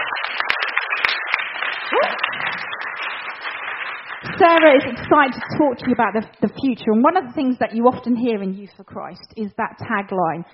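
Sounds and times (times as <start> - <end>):
audience applause: 0.0 - 5.5
person whooping: 1.9 - 2.4
speech: 2.0 - 2.6, 4.4 - 10.5.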